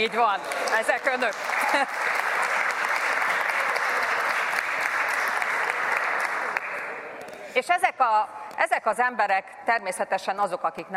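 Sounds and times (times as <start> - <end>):
speech: 0.0 - 2.2, 7.6 - 10.9
audience applause: 0.0 - 7.1.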